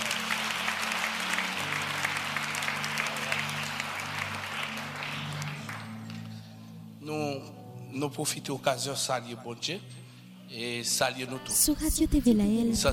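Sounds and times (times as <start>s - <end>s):
applause in praise of God: 0.0s - 6.5s
speech: 7.1s - 12.9s.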